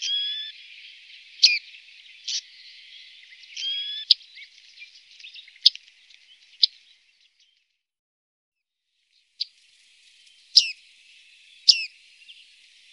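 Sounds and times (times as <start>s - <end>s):
bearded reedling metallic ping calls: 0.0s - 6.9s, 10.4s - 12.9s.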